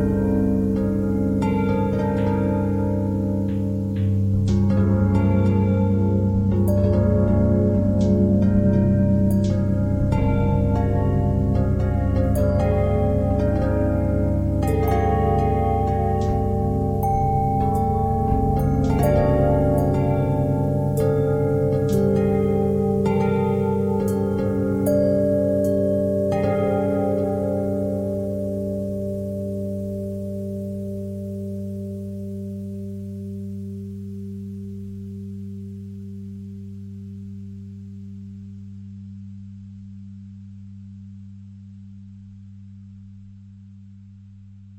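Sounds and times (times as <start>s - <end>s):
bells playing pentatonic notes: 0.0s - 35.1s.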